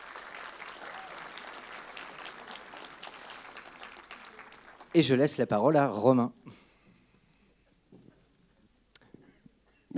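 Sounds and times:
audience applause: 0.0 - 5.4
speech: 4.9 - 6.6.

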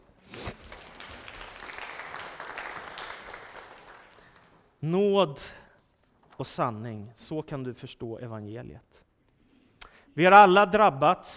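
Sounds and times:
group applause: 0.0 - 4.8
speech: 4.8 - 5.6, 6.4 - 9.0, 10.2 - 11.3.

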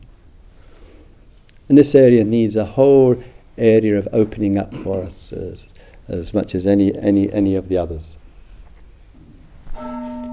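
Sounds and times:
speech: 1.7 - 8.2
bell ringing: 9.7 - 10.3.

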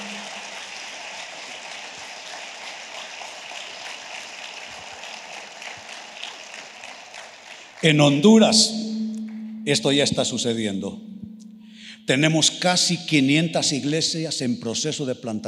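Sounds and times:
crowd applauding: 0.0 - 8.5
speech: 7.8 - 8.8, 9.6 - 11.1, 12.0 - 15.4.

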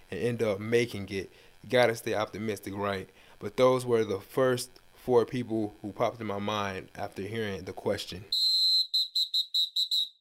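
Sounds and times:
speech: 0.2 - 8.5
whistle blasts: 8.3 - 10.1.

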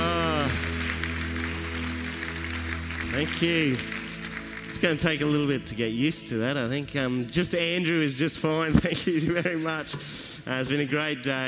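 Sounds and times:
audience applause welcoming a reverend in a church: 0.0 - 5.8
speech: 3.2 - 4.0, 4.7 - 11.4
laughter: 8.7 - 9.9.

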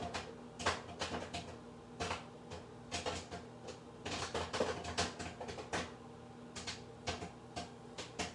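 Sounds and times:
popcorn kernels popping in microwave: 0.0 - 8.3.

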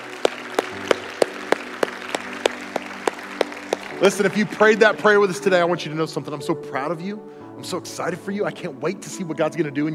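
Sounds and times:
audience applause: 0.0 - 5.5
speech: 4.0 - 9.9.

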